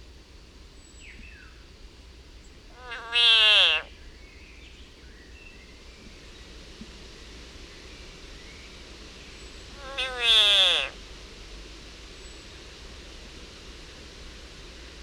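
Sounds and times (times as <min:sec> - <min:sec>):
frog screaming in agony: 0:02.7 - 0:03.9, 0:09.8 - 0:11.0.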